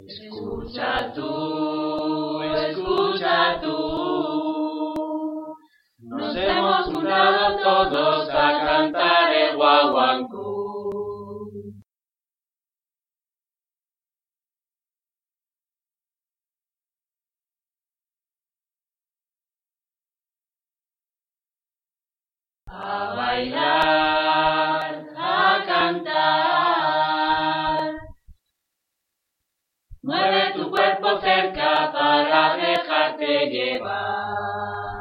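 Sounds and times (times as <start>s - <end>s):
choir singing: 0.0s - 11.8s, 22.7s - 28.1s, 30.0s - 34.9s.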